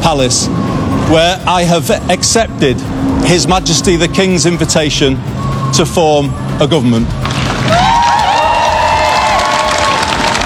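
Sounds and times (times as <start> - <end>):
speech: 0.1 - 7.8
large crowd of supporters cheering and applauding: 7.2 - 10.4
high-pitched whoops and shouts: 7.6 - 10.4.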